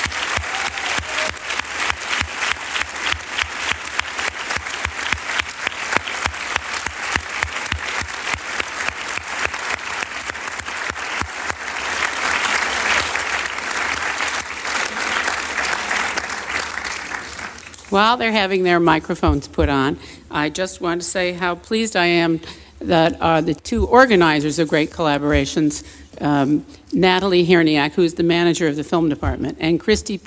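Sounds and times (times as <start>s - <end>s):
audience applauding as Uma Thurman and Quentin Tarantino take the stage: 0.0s - 17.8s
speech: 18.0s - 30.2s.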